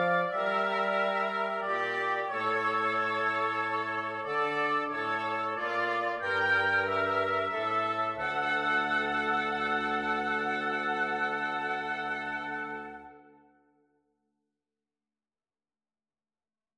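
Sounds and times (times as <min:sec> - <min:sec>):
bassoon playing a carol: 0:00.0 - 0:13.4
oboes playing a carol: 0:00.0 - 0:13.5.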